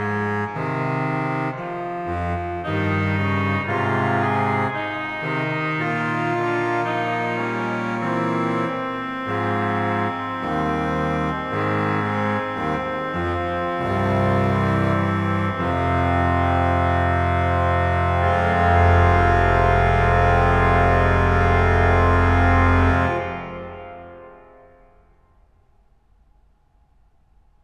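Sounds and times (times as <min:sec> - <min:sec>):
organ stops playing: 0:00.0 - 0:24.4.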